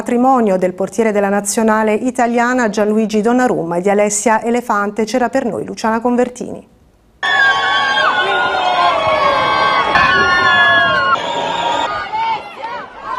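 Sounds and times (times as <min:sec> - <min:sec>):
speech: 0:00.0 - 0:07.9
crowd applauding newlyweds leaving church: 0:07.2 - 0:13.1.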